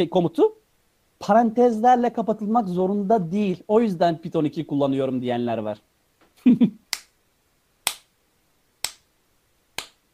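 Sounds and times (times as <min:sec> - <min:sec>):
speech: 0:00.0 - 0:00.6, 0:01.2 - 0:06.7
slow clap: 0:09.8 - 0:10.0.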